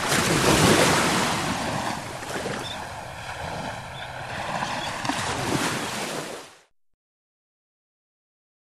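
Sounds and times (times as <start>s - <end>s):
ocean waves and surf: 0.0s - 6.7s.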